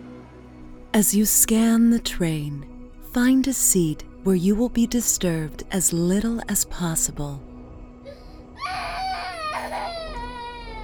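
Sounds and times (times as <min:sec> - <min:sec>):
speech: 0:01.0 - 0:07.5
child screaming and crying: 0:08.6 - 0:10.8.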